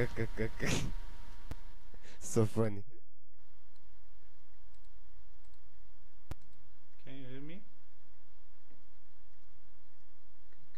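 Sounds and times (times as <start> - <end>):
speech: 0.0 - 1.0, 2.2 - 2.9
computer mouse clicks: 4.7 - 5.6, 6.3 - 6.6.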